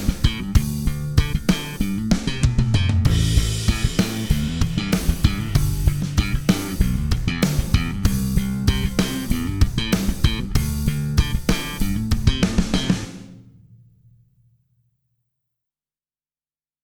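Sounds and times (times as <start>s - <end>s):
drums and bass through Chandler RS660 limiter, slow to fast: 0.0s - 13.4s.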